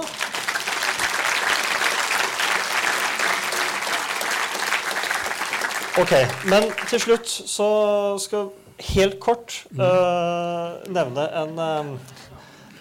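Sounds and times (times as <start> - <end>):
applause from a small group: 0.0 - 7.3
speech: 6.0 - 12.2.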